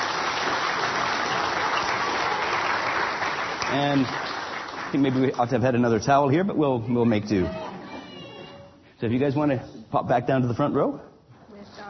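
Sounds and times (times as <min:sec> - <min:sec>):
audience applause: 0:00.0 - 0:05.8
speech: 0:03.7 - 0:07.6, 0:09.0 - 0:11.1.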